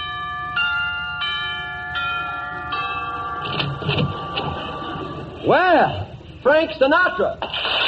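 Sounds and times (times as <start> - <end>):
doorbell ringing: 0.0 - 5.4
speech: 5.4 - 7.7.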